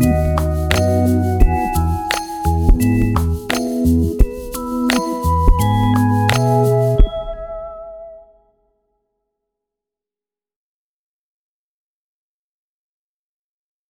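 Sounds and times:
music beat: 0.0s - 7.4s.

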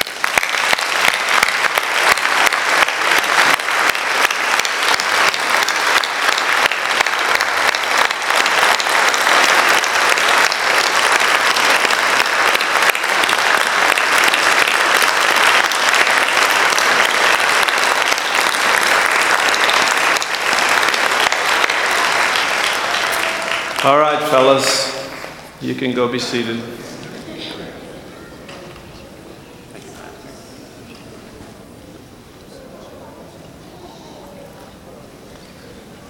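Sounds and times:
audience applauding: 0.0s - 27.1s
speech: 25.8s - 26.8s.

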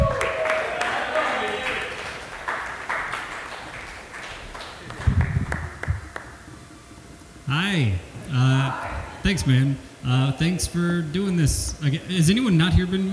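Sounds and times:
audience applause: 0.0s - 6.5s
speech: 7.5s - 8.0s, 9.3s - 13.1s.

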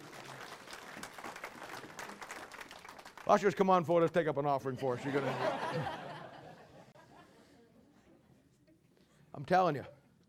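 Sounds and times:
audience applause: 0.0s - 3.5s
speech: 3.3s - 6.0s, 9.5s - 10.0s
laughter: 4.7s - 7.6s.

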